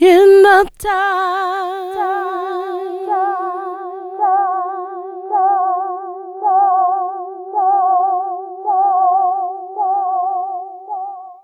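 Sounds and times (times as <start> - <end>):
funky vocals: 0.0 - 9.2.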